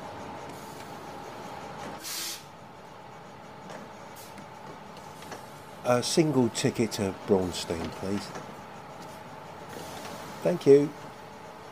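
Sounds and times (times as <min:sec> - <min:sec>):
bus engine idling: 0:00.0 - 0:11.7
burst of hissing air: 0:00.5 - 0:01.0, 0:01.8 - 0:02.6, 0:04.0 - 0:04.4, 0:09.7 - 0:10.5
speech: 0:05.9 - 0:08.5, 0:10.4 - 0:11.1.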